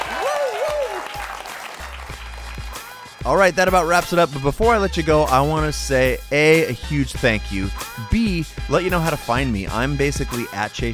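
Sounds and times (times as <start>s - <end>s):
single voice whooping: 0.0s - 1.2s
crowd applauding: 0.0s - 3.3s
speech: 3.2s - 10.9s.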